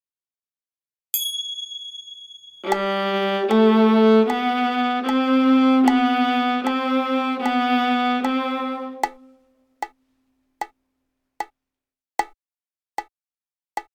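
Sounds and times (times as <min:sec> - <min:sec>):
viola G string played: 0:02.6 - 0:09.4.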